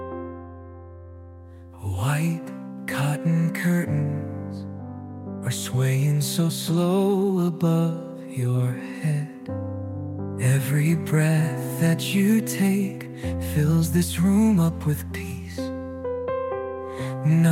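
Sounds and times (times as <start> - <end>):
lullaby singing: 1.8 - 4.7, 5.4 - 9.6, 10.4 - 15.8, 16.9 - 17.4.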